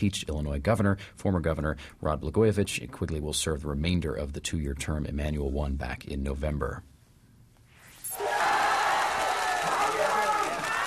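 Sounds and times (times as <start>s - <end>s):
speech: 0.0s - 6.9s
angry crowd shouting at mass protests in Thailand: 8.2s - 10.8s.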